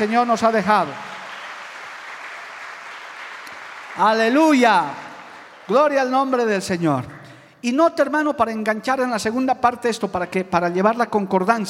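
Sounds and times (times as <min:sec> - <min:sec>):
speech: 0:00.0 - 0:01.1, 0:04.0 - 0:05.0, 0:05.7 - 0:11.6
audience applause: 0:00.0 - 0:07.4.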